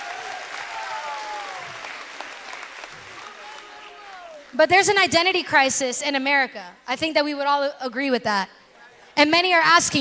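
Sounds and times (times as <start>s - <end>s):
faint cheers and whoops: 0.0s - 1.9s, 3.1s - 4.5s
crowd applauding: 0.0s - 4.8s
speech: 4.5s - 8.6s, 9.2s - 9.9s.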